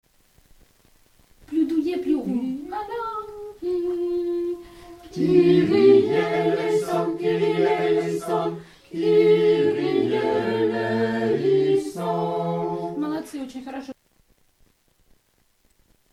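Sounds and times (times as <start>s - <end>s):
triple ensemble singing: 1.6s - 13.3s.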